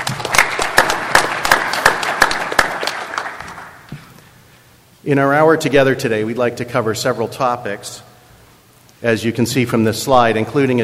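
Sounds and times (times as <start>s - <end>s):
audience applauding to welcome a speaker at a brewery safety presentation: 0.0s - 3.8s
speech: 5.0s - 8.1s, 9.0s - 10.8s.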